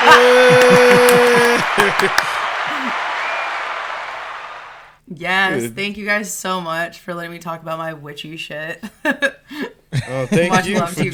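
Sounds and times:
laughter: 0:00.0 - 0:03.0, 0:09.9 - 0:11.1
applause: 0:00.0 - 0:05.0
speech: 0:05.2 - 0:11.1.

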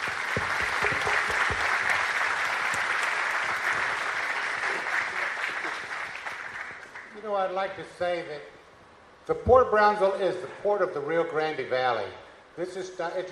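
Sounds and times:
audience applause for panelists: 0:00.0 - 0:07.1
speech: 0:07.4 - 0:08.6, 0:09.3 - 0:13.3.

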